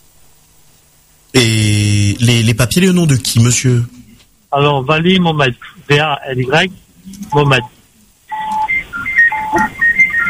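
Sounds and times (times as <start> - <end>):
low rumbling background noise: 0.0 - 10.2
speech: 1.4 - 7.8
phone ringing in background: 8.3 - 10.2.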